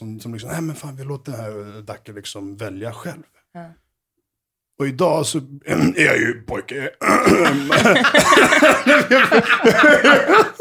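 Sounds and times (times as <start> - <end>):
speech: 0.2 - 3.8, 4.8 - 10.5
person coughing: 7.0 - 9.0
laughter: 7.0 - 10.5.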